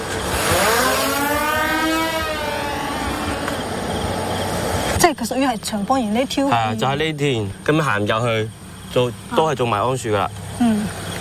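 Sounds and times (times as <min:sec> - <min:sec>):
drone flying: 0:00.0 - 0:05.0
speech: 0:05.1 - 0:11.0.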